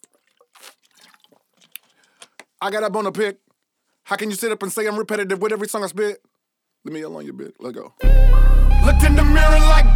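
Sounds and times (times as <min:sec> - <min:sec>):
person gulping and swallowing water: 0:00.0 - 0:02.4
speech: 0:02.6 - 0:03.4, 0:04.1 - 0:09.9.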